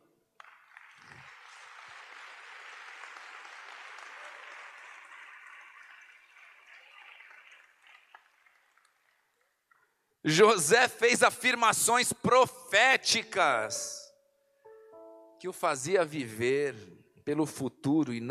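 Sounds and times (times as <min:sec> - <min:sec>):
crowd applause: 0:00.4 - 0:09.4
speech: 0:10.3 - 0:14.0, 0:15.4 - 0:18.2.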